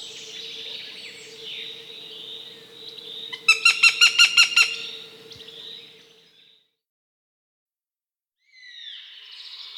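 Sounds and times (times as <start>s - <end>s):
Northern goshawk nasal calls: 0.0s - 6.0s.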